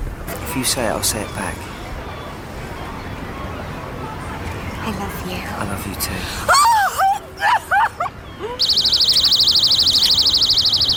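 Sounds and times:
speech: 0:00.5 - 0:01.7, 0:04.8 - 0:06.7
laughter: 0:06.5 - 0:08.6
phone alarm ringing: 0:08.6 - 0:10.9.

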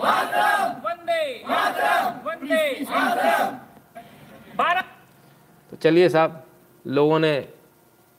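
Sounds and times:
crowd chanting patriotic Indian slogans: 0:00.0 - 0:03.7
speech: 0:05.8 - 0:07.6.

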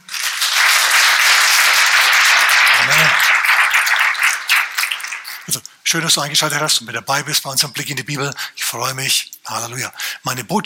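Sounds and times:
audience clapping: 0:00.0 - 0:05.6
speech: 0:05.9 - 0:10.6.

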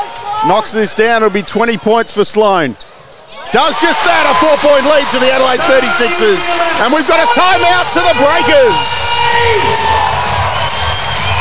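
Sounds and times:
speech: 0:00.4 - 0:02.8, 0:03.5 - 0:10.2
basketball crowd cheering wildly: 0:03.4 - 0:11.3.

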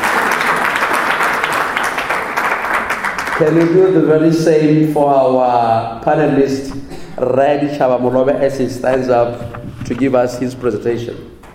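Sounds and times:
audience clapping: 0:00.0 - 0:04.0
speech: 0:03.4 - 0:11.4.

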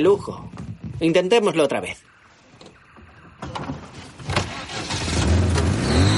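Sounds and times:
speech: 0:00.0 - 0:02.1
car engine stalling: 0:03.4 - 0:06.1.

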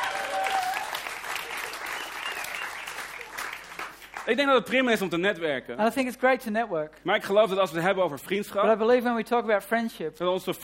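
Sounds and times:
audience clapping: 0:00.0 - 0:04.7
whistle-like tone: 0:01.7 - 0:02.9
speech: 0:04.2 - 0:10.6.

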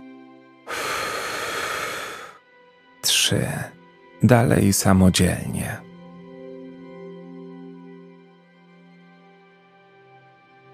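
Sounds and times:
full fast exhale through the mouth: 0:00.7 - 0:02.4
speech: 0:03.3 - 0:05.9.

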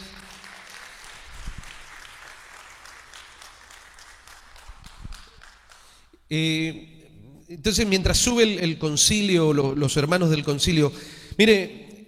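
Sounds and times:
audience applauding: 0:00.0 - 0:06.1
speech: 0:06.3 - 0:06.9, 0:07.5 - 0:11.8.

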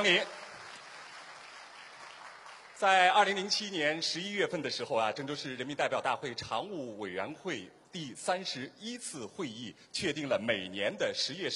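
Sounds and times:
speech: 0:00.0 - 0:00.4, 0:02.8 - 0:11.5
audience applause: 0:00.0 - 0:02.9.

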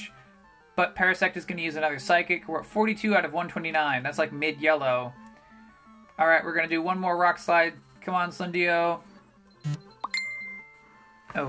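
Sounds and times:
speech: 0:00.8 - 0:05.2, 0:06.2 - 0:09.8
phone beeping: 0:09.5 - 0:10.8.

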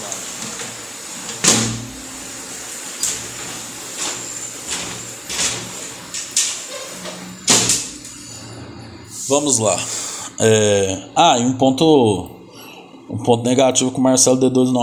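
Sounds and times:
window being slid and pushed shut: 0:00.0 - 0:09.3
steady hiss of heavy rain: 0:00.0 - 0:11.0
speech: 0:09.3 - 0:12.4, 0:13.1 - 0:14.8.

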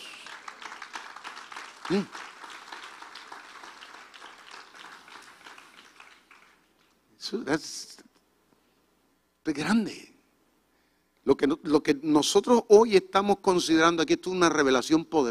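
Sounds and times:
audience applause: 0:00.0 - 0:06.9
speech: 0:01.9 - 0:02.2, 0:07.3 - 0:08.1, 0:09.5 - 0:10.1, 0:11.2 - 0:15.2.

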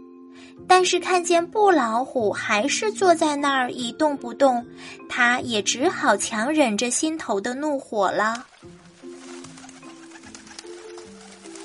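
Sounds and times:
speech: 0:00.6 - 0:08.8
bird cooing: 0:08.3 - 0:11.6.

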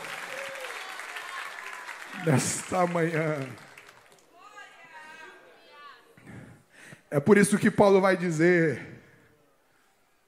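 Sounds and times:
audience applause: 0:00.0 - 0:04.3
speech: 0:02.2 - 0:03.7, 0:07.1 - 0:08.9.

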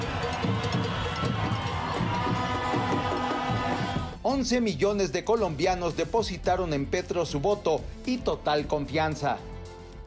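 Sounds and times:
large street crowd cheering and chanting, celebrating election results: 0:00.0 - 0:04.2
speech: 0:04.3 - 0:09.5.

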